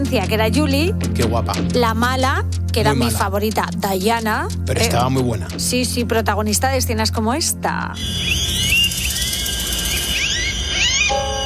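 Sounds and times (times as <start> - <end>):
speech: 0.1 - 8.6
rat squealing: 8.0 - 11.4.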